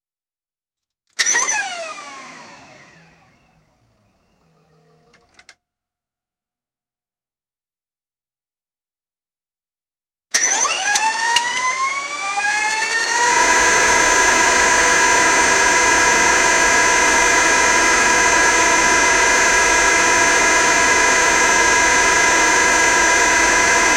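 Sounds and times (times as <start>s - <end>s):
engine ignition starting slowly: 1.2s - 3.6s, 4.3s - 5.6s, 10.3s - 13.5s
alternator running: 11.4s - 23.9s.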